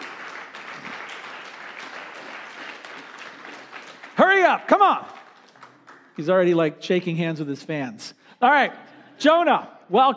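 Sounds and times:
audience applause: 0.0 - 6.2
speech: 4.5 - 5.2, 6.2 - 10.1.

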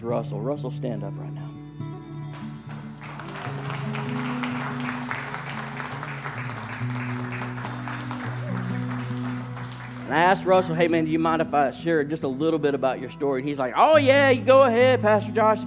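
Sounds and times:
speech: 0.0 - 1.6, 10.1 - 15.6
audience clapping: 2.3 - 11.1.

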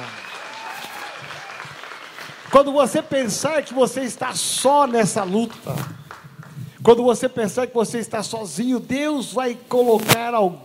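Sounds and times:
audience applauding loudly: 0.0 - 6.7
speech: 2.5 - 6.0, 6.8 - 10.6.

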